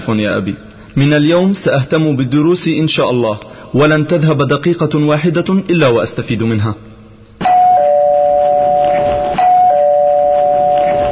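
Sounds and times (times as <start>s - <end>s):
speech: 0.0s - 6.9s
electronic two-tone doorbell chime: 7.4s - 11.0s.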